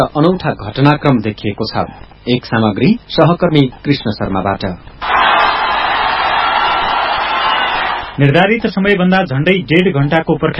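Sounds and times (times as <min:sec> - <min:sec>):
speech: 0:00.0 - 0:05.4, 0:08.2 - 0:10.5
crowd hooting at a party convention venue: 0:05.0 - 0:08.2.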